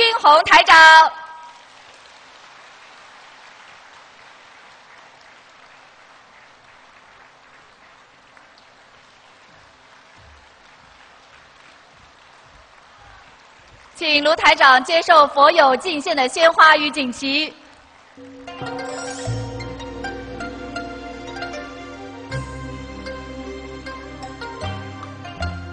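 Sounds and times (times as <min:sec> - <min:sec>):
speech: 0:00.2 - 0:01.2, 0:14.0 - 0:17.6
audience applause: 0:01.4 - 0:14.6.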